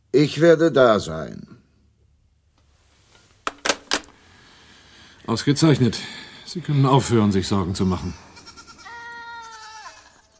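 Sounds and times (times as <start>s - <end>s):
hiss: 0.0s - 10.3s
speech: 0.1s - 1.5s, 5.3s - 8.3s
goat bleating: 8.1s - 10.3s.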